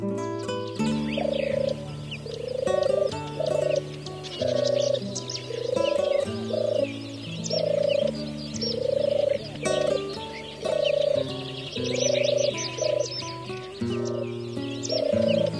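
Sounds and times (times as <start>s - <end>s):
European turtle dove cooing: 0.5s - 15.5s.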